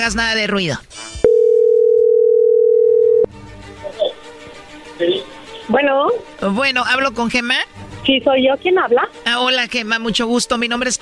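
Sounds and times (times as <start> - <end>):
speech: 0.0 - 1.0, 5.0 - 10.9
phone ringback tone on an outgoing call: 1.2 - 3.3.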